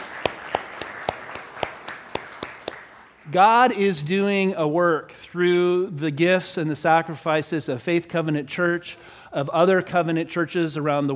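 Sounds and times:
audience round of applause: 0:00.0 - 0:03.2
speech: 0:03.3 - 0:11.1.

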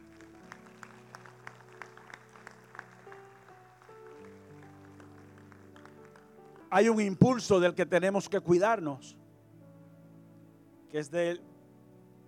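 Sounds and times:
audience applause: 0:00.0 - 0:06.7
speech: 0:06.7 - 0:09.2, 0:10.9 - 0:11.5.

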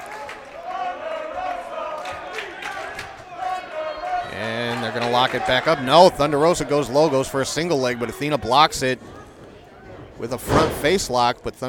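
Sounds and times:
wrestling crowd chanting for a new champion during a women's title match: 0:00.0 - 0:10.9
speech: 0:04.4 - 0:09.1, 0:10.2 - 0:11.6.

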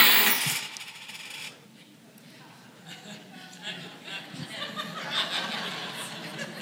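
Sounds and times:
coins thrown into a collection box: 0:00.0 - 0:01.5
laughter: 0:02.8 - 0:06.6.

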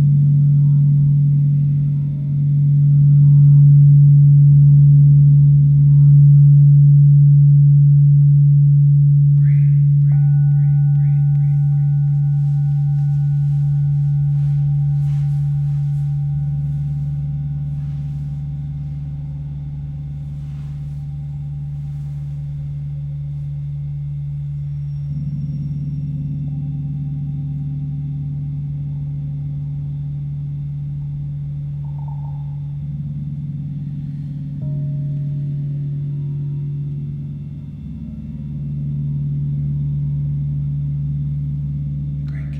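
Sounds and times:
singing bowls humming in deep drone at a sound bath: 0:00.0 - 0:42.5
thin high tones and soft chimes: 0:09.4 - 0:28.4, 0:31.8 - 0:33.1.

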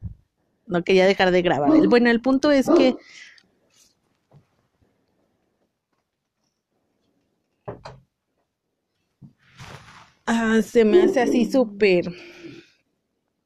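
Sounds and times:
speech: 0:00.7 - 0:03.3, 0:10.3 - 0:12.4
dog barking: 0:01.6 - 0:02.0, 0:02.6 - 0:03.0.

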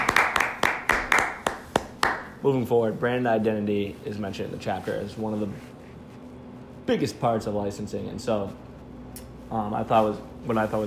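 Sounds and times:
applause: 0:00.0 - 0:02.4
speech: 0:02.4 - 0:05.8, 0:06.9 - 0:08.6, 0:09.5 - 0:10.8.

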